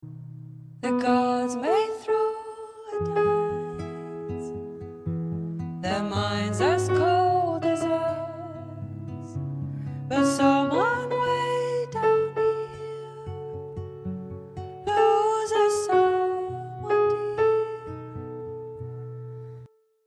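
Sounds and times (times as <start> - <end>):
person singing guide vocal: 0.8 - 4.6, 5.8 - 9.1, 10.1 - 13.7, 14.8 - 18.2.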